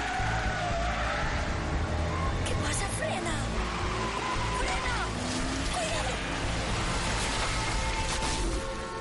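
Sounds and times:
car engine and road noise roar: 0:00.0 - 0:08.9
car tires squealing on curve: 0:00.0 - 0:08.9.

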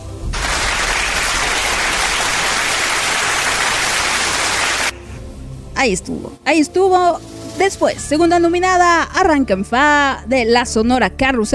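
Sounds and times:
applause: 0:00.3 - 0:04.9
speech: 0:05.8 - 0:11.5.

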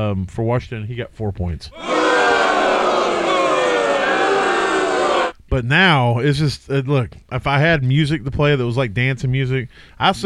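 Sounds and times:
speech: 0:00.0 - 0:02.6, 0:05.5 - 0:10.2
crowd booing sound effect: 0:01.8 - 0:05.4.

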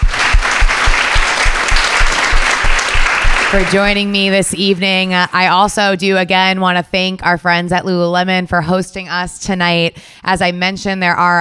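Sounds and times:
audience applause: 0:00.0 - 0:04.1
speech: 0:03.5 - 0:11.4.

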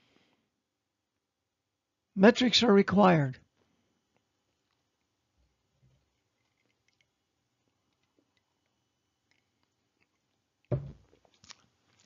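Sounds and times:
speech: 0:02.2 - 0:03.4
drinking a sip of water: 0:06.0 - 0:12.0.

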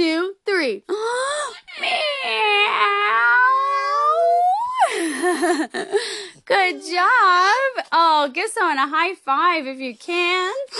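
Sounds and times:
speech: 0:00.0 - 0:01.0, 0:05.5 - 0:10.7
several voices imitating a cat's meow: 0:01.8 - 0:04.9.

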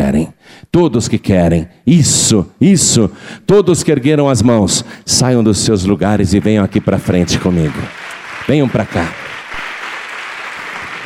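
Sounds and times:
speech: 0:00.1 - 0:09.2
audience applause: 0:06.6 - 0:11.0.

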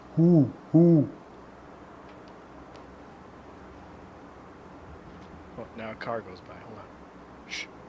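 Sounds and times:
owl hooting: 0:00.1 - 0:01.3
speech: 0:00.2 - 0:01.2, 0:06.0 - 0:07.7.

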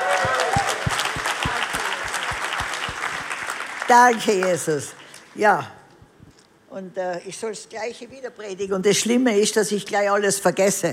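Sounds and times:
regular rhythmic beat of low thumps: 0:00.0 - 0:03.4, 0:06.0 - 0:06.4
audience clapping: 0:00.0 - 0:05.0
speech: 0:03.9 - 0:05.8, 0:06.8 - 0:10.9.

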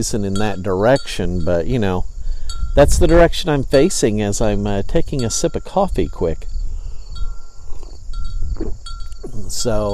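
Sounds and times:
speech: 0:00.0 - 0:02.1, 0:02.8 - 0:06.5, 0:08.6 - 0:09.9
wind chimes ringing in wind: 0:00.0 - 0:09.9.

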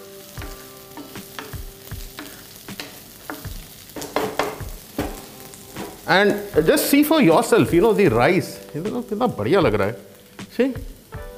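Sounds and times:
onion and bell peppers sizzling in a hot pan: 0:00.0 - 0:11.3
spoon stirring and scraping a pan: 0:00.6 - 0:06.5
speech: 0:06.1 - 0:11.0.

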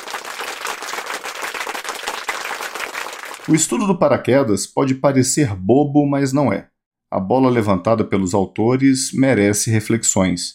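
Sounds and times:
round of applause: 0:00.0 - 0:03.6
speech: 0:03.5 - 0:10.5.

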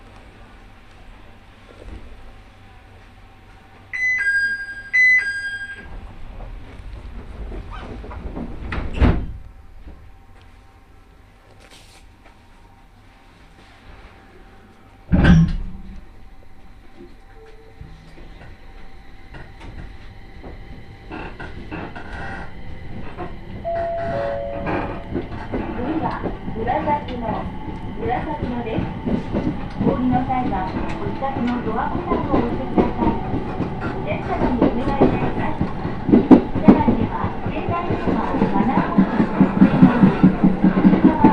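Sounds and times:
train running rumble on the Tōhoku and Kitakami lines: 0:00.0 - 0:04.0, 0:05.2 - 0:41.3
short chime-like electronic tone: 0:04.0 - 0:05.9, 0:23.7 - 0:24.7.

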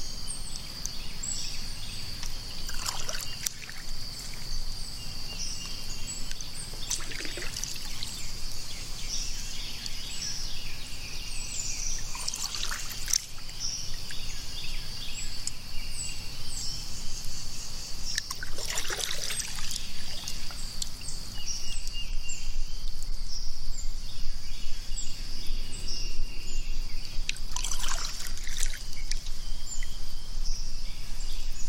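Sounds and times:
birds chirping: 0:00.0 - 0:31.6
high insect-like whine: 0:00.0 - 0:31.6
water lapping and trickling around a kayak: 0:02.1 - 0:04.8, 0:05.6 - 0:10.3, 0:11.7 - 0:14.6, 0:18.0 - 0:21.4, 0:27.2 - 0:30.0
water splashes: 0:02.2 - 0:04.5, 0:06.7 - 0:08.5, 0:12.0 - 0:14.2, 0:18.1 - 0:21.0, 0:27.2 - 0:29.9.

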